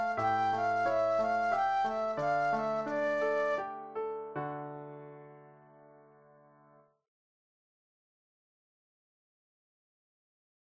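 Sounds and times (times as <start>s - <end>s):
flute solo: 0.0s - 3.8s.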